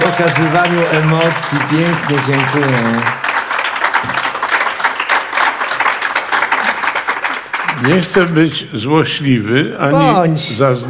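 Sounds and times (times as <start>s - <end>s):
audience applause: 0.0s - 8.6s
speech: 0.1s - 3.2s, 7.8s - 10.8s.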